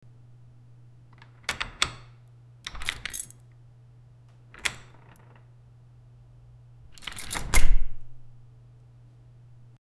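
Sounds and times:
lock: 1.1 - 2.1, 2.7 - 3.4, 4.5 - 5.4, 6.9 - 8.2.

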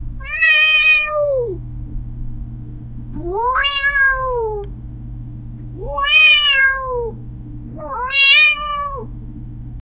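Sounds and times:
cat meowing wildly: 0.2 - 1.6, 3.2 - 4.6, 5.8 - 7.2, 7.8 - 9.1.

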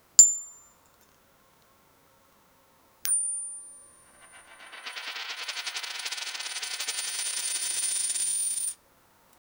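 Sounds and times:
collectible coin collect sound: 3.1 - 8.8.

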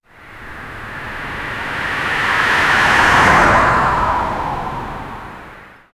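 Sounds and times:
apocalyptic night forest road ambience: 0.0 - 5.7.

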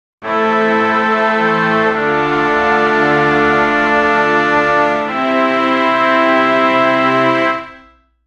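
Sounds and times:
proud musical anthem: 0.2 - 7.9.

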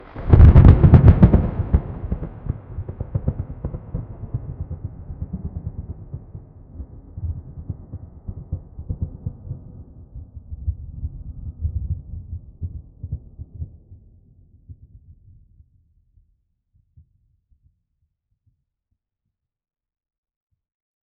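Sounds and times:
faraway thunderclap: 0.2 - 9.9.

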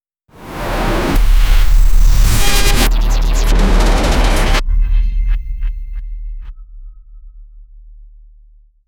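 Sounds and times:
cinematic logo bass hit: 0.4 - 6.6.

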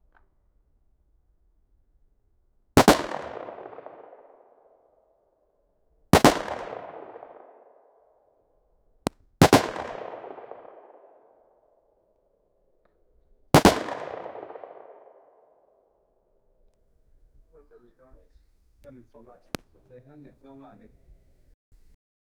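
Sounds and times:
AK-47 rifle firing a single sharp shot indoors: 2.8 - 4.4, 6.2 - 7.6, 9.4 - 11.2, 13.6 - 15.2.

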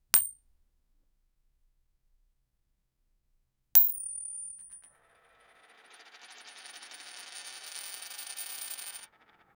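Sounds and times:
coin falling: 3.8 - 9.5.

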